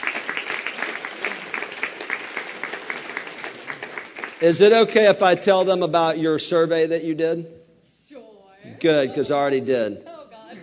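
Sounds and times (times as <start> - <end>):
audience applause, hand clapping: 0.0 - 5.6
speech: 4.4 - 7.6, 8.8 - 10.1.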